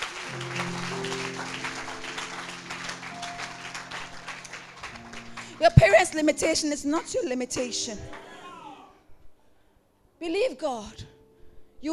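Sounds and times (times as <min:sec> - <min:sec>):
crowd clapping: 0:00.0 - 0:06.7
speech: 0:05.6 - 0:08.3, 0:10.3 - 0:11.1.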